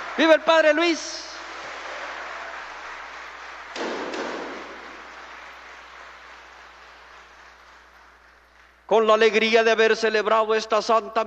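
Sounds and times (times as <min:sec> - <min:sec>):
audience applauding the parish priest: 0:00.0 - 0:08.9
speech: 0:00.2 - 0:01.3, 0:08.9 - 0:11.2.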